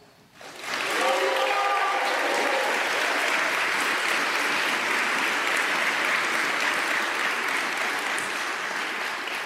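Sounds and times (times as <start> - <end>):
crowd applause and cheering: 0.4 - 9.4.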